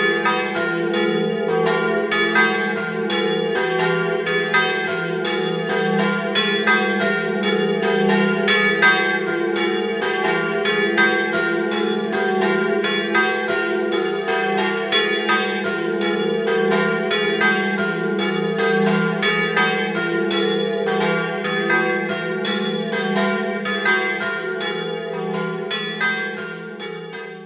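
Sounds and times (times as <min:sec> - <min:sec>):
bells ringing in San Foca: 0:00.0 - 0:27.4.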